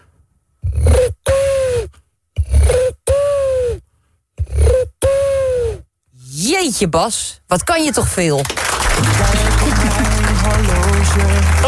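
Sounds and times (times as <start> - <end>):
man imitating a pigeon cooing: 0.6 - 3.8, 4.4 - 5.9
speech: 6.7 - 9.5
laughter: 8.9 - 11.6.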